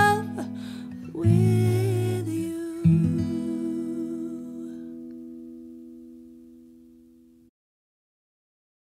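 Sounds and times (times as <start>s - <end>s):
acoustic duo playing a cover: 0.0s - 6.9s.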